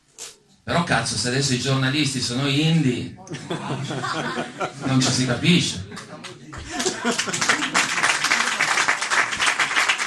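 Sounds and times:
speech: 0.7 - 8.1
laughter: 3.3 - 9.0
audience applause: 6.2 - 10.0.

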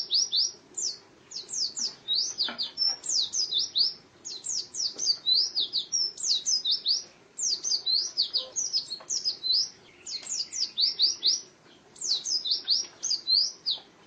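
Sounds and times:
white-eye singing: 2.9 - 13.5.

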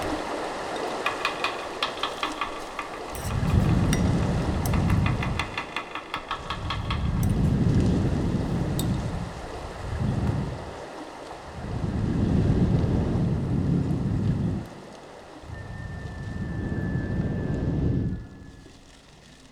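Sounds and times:
sea waves surging and receding in rumbling swells: 0.0 - 19.4
wind roaring across the microphone: 0.0 - 19.4
faint thin whistle: 15.4 - 19.4.

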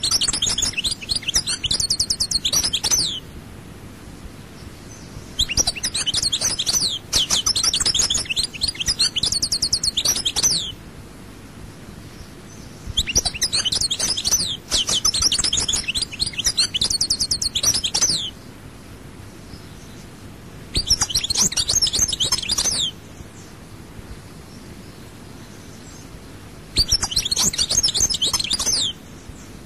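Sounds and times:
European goldfinch twittering song: 0.0 - 3.3, 4.6 - 10.8, 12.2 - 18.5, 20.7 - 23.6, 26.7 - 29.6.

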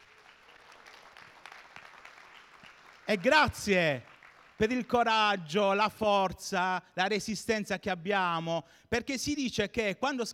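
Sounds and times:
audience applauding: 0.0 - 4.9
speech: 3.1 - 10.3.

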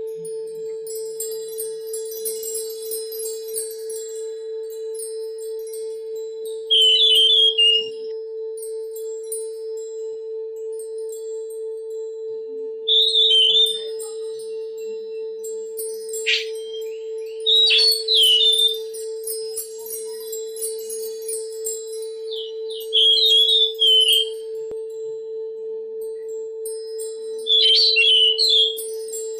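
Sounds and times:
Oriental magpie-robin song: 6.7 - 8.0, 12.9 - 15.4, 16.2 - 21.3, 22.2 - 24.5, 27.5 - 29.0.

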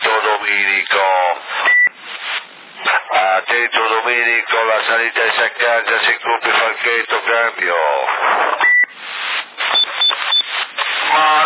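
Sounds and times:
hissy radio transmission static: 0.0 - 11.4
short electronic radio transmission beep: 1.6 - 2.0, 8.4 - 9.0, 9.6 - 11.4.

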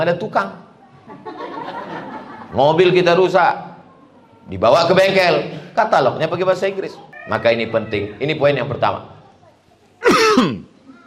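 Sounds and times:
speech: 0.0 - 1.3, 2.5 - 3.7, 4.5 - 9.1
laughter: 1.0 - 2.7
cough: 10.0 - 10.7.

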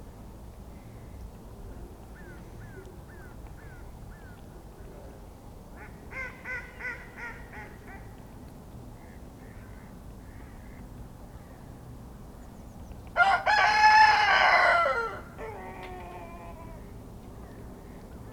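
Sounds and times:
rooster crowing in a pen at a small farmhouse in Kawcze, Poland: 13.2 - 16.8.

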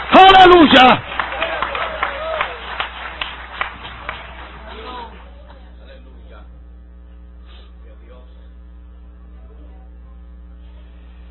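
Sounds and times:
crowd clapping in applause for the Lord: 0.0 - 5.6
speech: 0.4 - 1.1.

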